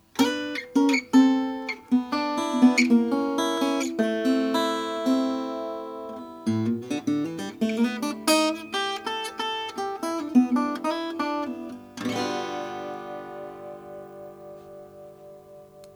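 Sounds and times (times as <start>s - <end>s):
Weymann style 740 natural mandolin playing: 0.0s - 15.9s.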